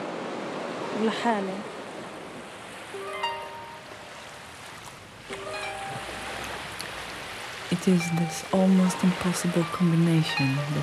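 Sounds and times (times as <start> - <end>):
sea waves washing on the shore north of Tel Aviv: 0.0 - 10.8
speech: 1.0 - 1.8, 7.8 - 10.8.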